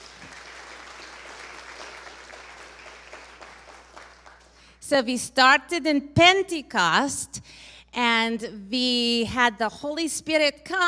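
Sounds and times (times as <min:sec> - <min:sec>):
audience applause: 0:00.0 - 0:04.6
speech: 0:04.9 - 0:10.8.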